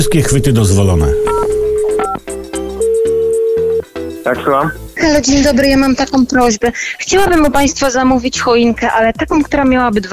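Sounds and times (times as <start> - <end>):
speech: 0.0 - 1.5, 4.2 - 10.1
electronic keypad tones of a phone number being dialed: 0.0 - 2.2, 2.8 - 3.8.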